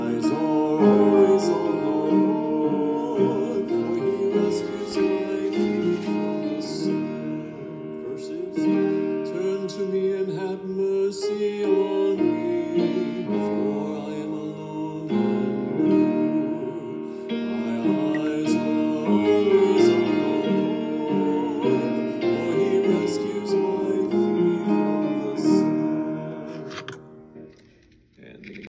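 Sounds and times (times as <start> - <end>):
choir chanting entrance antiphon: 0.0 - 27.5.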